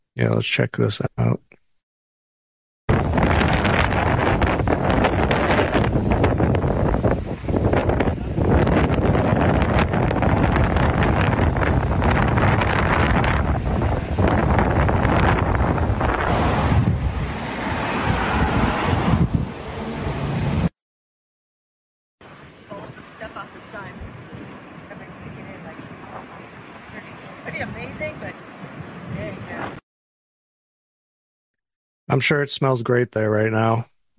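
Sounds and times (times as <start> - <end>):
speech: 0.2 - 1.5, 32.2 - 33.9
loud wind: 2.9 - 20.7, 22.2 - 29.8.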